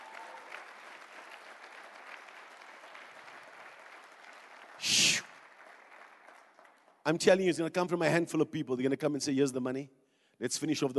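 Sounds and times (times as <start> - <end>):
audience clapping: 0.0 - 7.5
speech: 7.1 - 10.9.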